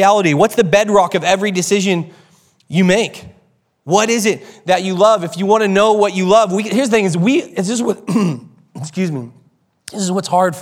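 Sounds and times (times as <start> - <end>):
speech: 0.0 - 10.6
man clearing his throat: 8.0 - 8.8.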